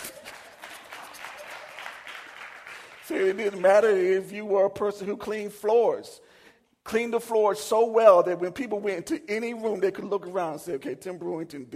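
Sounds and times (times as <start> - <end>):
audience clapping for a cake baker: 0.0 - 4.3
speech: 3.1 - 6.2, 6.9 - 11.7.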